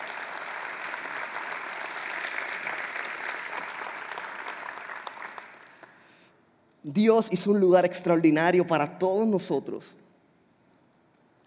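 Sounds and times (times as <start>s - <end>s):
audience applause: 0.0s - 6.1s
speech: 6.8s - 10.0s.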